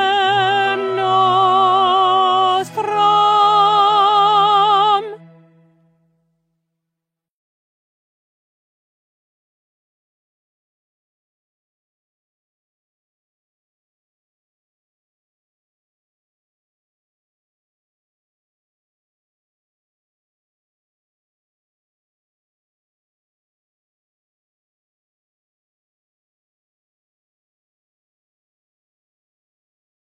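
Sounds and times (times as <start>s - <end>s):
contralto voices singing: 0.0s - 5.2s.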